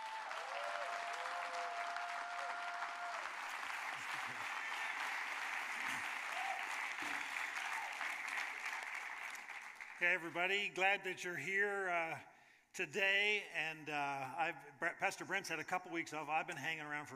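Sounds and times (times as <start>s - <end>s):
King's Church congregation applauding a guest pastor: 0.0s - 10.8s
speech: 10.0s - 17.1s.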